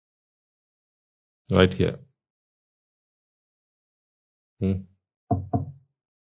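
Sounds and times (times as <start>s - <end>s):
speech: 1.5s - 2.1s, 4.6s - 5.8s
hollow knocking: 5.3s - 5.8s.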